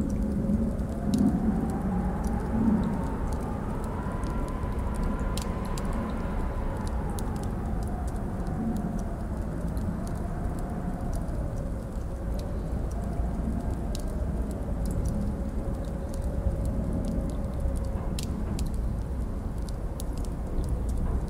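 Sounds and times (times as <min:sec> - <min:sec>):
castle ambience: 0:00.0 - 0:21.2.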